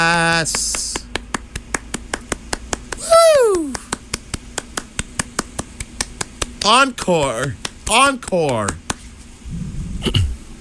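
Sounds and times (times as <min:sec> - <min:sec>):
lone man hand clapping: 0:00.4 - 0:09.0
man whooping cheers: 0:03.0 - 0:03.8
speech: 0:06.7 - 0:08.8.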